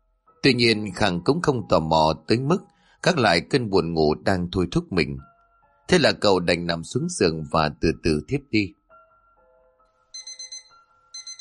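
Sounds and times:
speech: 0.4s - 5.3s, 5.9s - 8.8s
alarm clock ringing: 10.1s - 11.3s.

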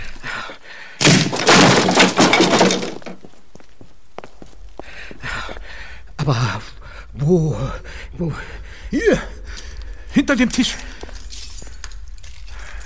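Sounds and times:
wooden door being forced open: 1.0s - 3.3s
speech: 7.3s - 9.3s, 10.2s - 10.9s.

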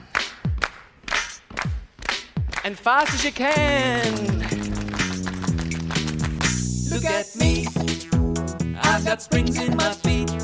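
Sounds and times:
fast hand clapping: 0.0s - 6.7s
speech: 2.6s - 4.7s, 6.9s - 8.0s, 8.9s - 10.4s.

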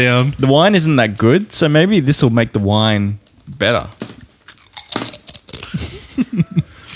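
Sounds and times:
speech: 0.0s - 4.0s
chewing thumps: 3.2s - 5.1s
someone crunching a taco chip: 3.2s - 6.4s.

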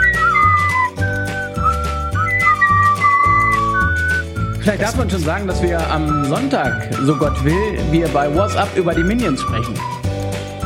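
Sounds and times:
instrumental music with a pulsing low bass line: 0.0s - 10.6s
person whistling a simple melody: 0.0s - 10.6s
speech: 4.7s - 10.0s.

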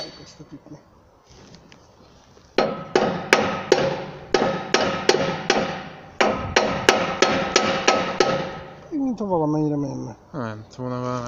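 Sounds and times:
speech: 0.2s - 1.0s, 9.1s - 11.2s
hammer blows: 2.6s - 8.9s.

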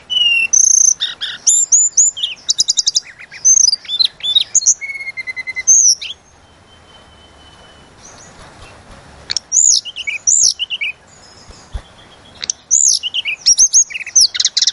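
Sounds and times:
Tledekan gunung singing: 0.0s - 14.7s.

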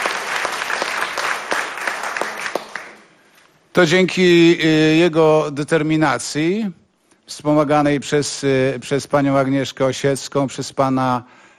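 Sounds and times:
audience applause: 0.0s - 3.2s
speech: 3.8s - 11.4s.

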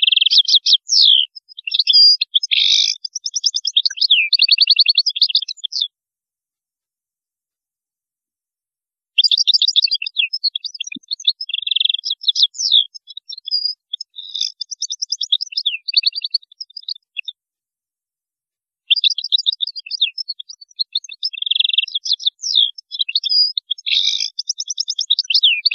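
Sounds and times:
European goldfinch twittering: 0.0s - 5.9s, 9.2s - 17.3s, 18.9s - 25.7s.

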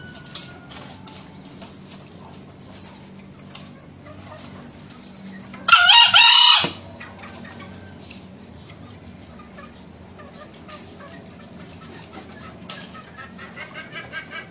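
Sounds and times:
green junglefowl clucking: 0.0s - 14.5s.

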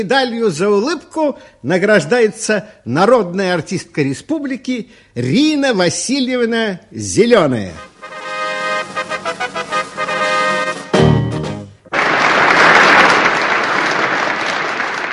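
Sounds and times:
speech: 0.0s - 8.2s
rhythmic music: 7.8s - 11.9s
children applauding as performer comes on stage at a concert: 11.9s - 15.1s.

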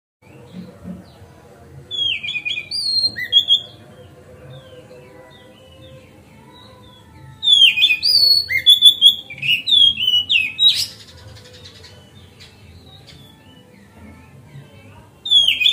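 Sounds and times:
Oriental magpie-robin song: 1.9s - 13.8s, 15.2s - 15.7s.

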